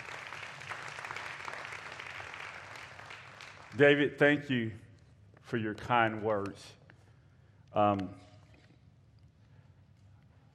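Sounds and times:
crowd applauding: 0.0 - 4.1
speech: 3.8 - 4.8, 5.5 - 6.8, 7.7 - 8.3.

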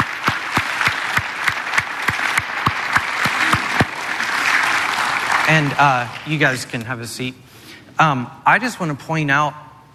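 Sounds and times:
audience clapping: 0.0 - 6.8
speech: 5.5 - 9.6.

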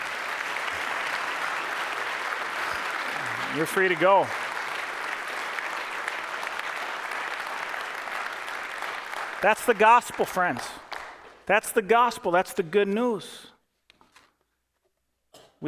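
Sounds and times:
audience applause: 0.0 - 11.3
speech: 3.5 - 4.4, 9.4 - 10.8, 11.5 - 13.5.

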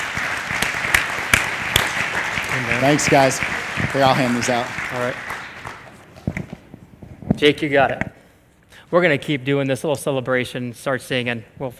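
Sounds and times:
audience applause: 0.0 - 6.5
speech: 2.6 - 5.3, 7.4 - 8.1, 8.9 - 11.7.

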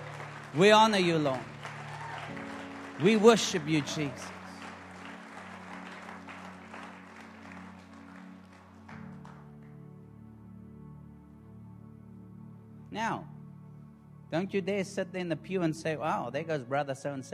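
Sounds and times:
audience clapping: 0.0 - 9.9
speech: 0.5 - 1.5, 3.0 - 4.4, 14.3 - 17.3.

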